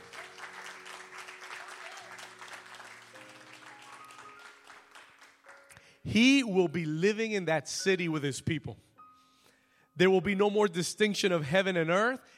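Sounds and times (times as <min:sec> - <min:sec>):
audience hand clapping: 0:00.0 - 0:05.8
speech: 0:06.0 - 0:08.9, 0:10.0 - 0:12.3.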